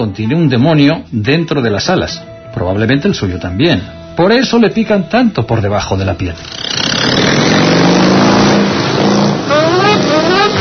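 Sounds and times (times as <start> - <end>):
speech: 0.0 - 7.8
motorcycle starting and riding away: 6.4 - 10.5.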